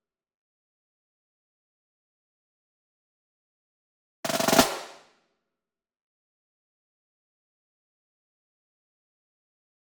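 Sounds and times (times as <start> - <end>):
single Pearl marching snare drum roll: 4.3 - 5.0.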